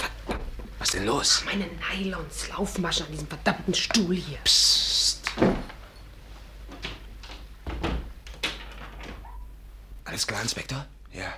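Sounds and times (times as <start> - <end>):
speech: 0.8 - 5.6, 10.2 - 11.3
flat door thud: 5.4 - 5.8, 7.6 - 9.4
flat door knocks and rattles: 6.7 - 9.6.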